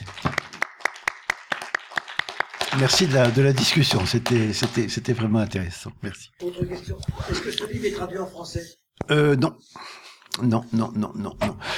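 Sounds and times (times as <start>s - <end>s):
crisp hand claps closing a sociology talk: 0.0s - 4.9s
speech: 2.8s - 11.7s.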